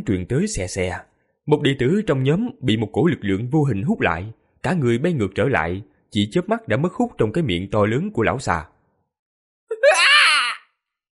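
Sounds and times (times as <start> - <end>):
speech: 0.0 - 8.7
man's terrified scream: 9.7 - 10.8.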